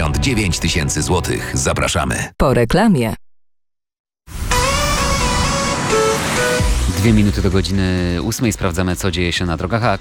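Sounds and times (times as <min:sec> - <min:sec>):
speech: 0:00.2 - 0:03.2, 0:07.0 - 0:09.9
road traffic on the old national road between Sieradz and Zduńska Wola: 0:04.5 - 0:07.2.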